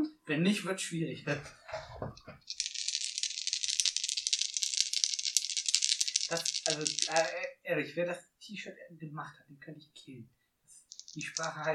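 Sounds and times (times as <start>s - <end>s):
speech: 0.3s - 2.6s, 6.3s - 10.4s, 11.1s - 11.7s
dice rattling and clattering: 2.4s - 7.5s, 10.9s - 11.7s.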